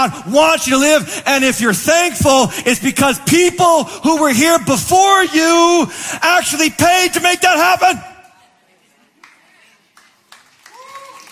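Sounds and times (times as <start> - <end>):
speech: 0.0 - 8.1
audience clapping: 9.1 - 11.3.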